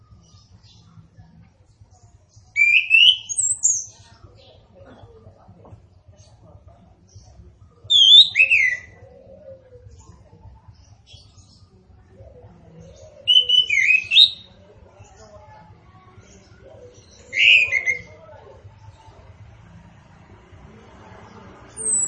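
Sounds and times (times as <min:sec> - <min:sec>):
orange-headed thrush singing warbled whistles: 0:02.6 - 0:03.9, 0:07.9 - 0:09.0, 0:13.2 - 0:14.5, 0:17.3 - 0:18.1, 0:21.8 - 0:22.0.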